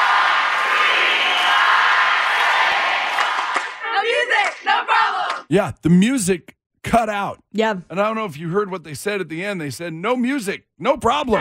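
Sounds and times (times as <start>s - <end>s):
crowd counting along at cheerleading routine: 0.0s - 6.2s
speech: 5.5s - 11.3s.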